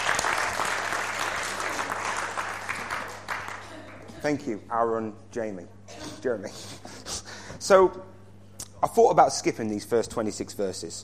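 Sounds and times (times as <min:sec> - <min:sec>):
audience clapping: 0:00.0 - 0:04.2
speech: 0:04.2 - 0:06.8, 0:07.6 - 0:08.2, 0:08.8 - 0:11.0.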